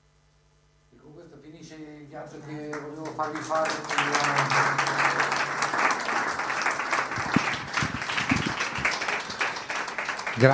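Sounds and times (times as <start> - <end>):
speech: 1.0 - 5.6, 10.4 - 10.5
audience applause at a concert: 2.3 - 10.5.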